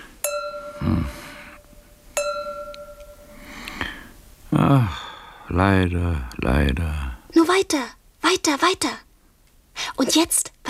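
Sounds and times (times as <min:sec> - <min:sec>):
glass ringing when struck: 0:00.0 - 0:03.5
speech: 0:00.8 - 0:01.2, 0:05.6 - 0:09.1, 0:09.8 - 0:10.6.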